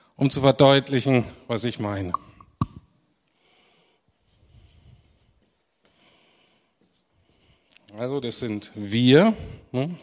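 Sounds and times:
speech: 0:00.2 - 0:02.3, 0:08.0 - 0:10.0
pen scratching across paper while drawing a sketch: 0:04.2 - 0:07.6.

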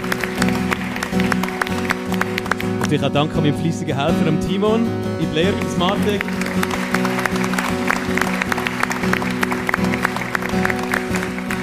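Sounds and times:
audience applause: 0:00.0 - 0:03.0, 0:05.4 - 0:11.6
speech: 0:02.9 - 0:08.3.

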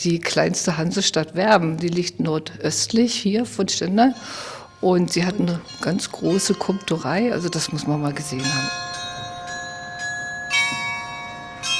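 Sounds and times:
speech: 0:00.0 - 0:09.0
town carillon bells of Stendal playing: 0:03.5 - 0:11.7.

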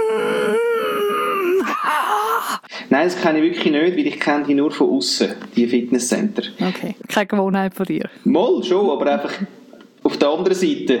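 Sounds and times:
person imitating the strained groan of someone lifting weights at a gym: 0:00.0 - 0:02.7
speech: 0:02.6 - 0:10.9.

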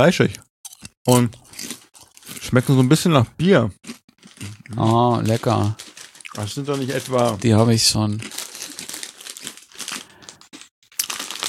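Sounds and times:
speech: 0:00.0 - 0:01.7, 0:02.5 - 0:03.9, 0:04.7 - 0:05.8, 0:06.4 - 0:08.4
bag of potato chips crinkling: 0:04.2 - 0:11.4.

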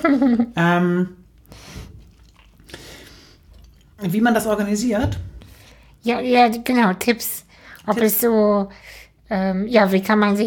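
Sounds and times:
speech: 0:00.0 - 0:01.7, 0:04.0 - 0:05.3, 0:06.0 - 0:10.4
person eating nuts: 0:01.4 - 0:04.0.

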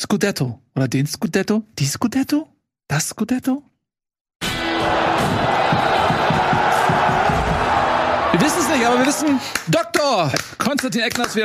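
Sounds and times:
speech: 0:00.1 - 0:03.7, 0:08.5 - 0:11.4
audience cheering: 0:04.4 - 0:09.8
audience applause: 0:04.6 - 0:11.4.

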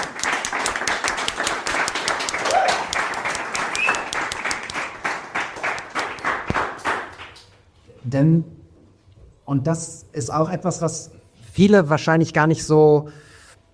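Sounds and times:
applause: 0:00.0 - 0:07.6
speech: 0:08.1 - 0:08.6, 0:09.5 - 0:13.3.

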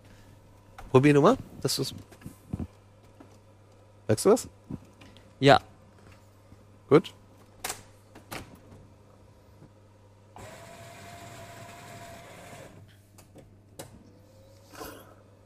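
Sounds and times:
speech: 0:00.9 - 0:02.3, 0:04.1 - 0:04.8, 0:05.4 - 0:05.7, 0:06.9 - 0:07.2
coffee grinder motor grinding beans at a coarser setting: 0:10.4 - 0:12.7.

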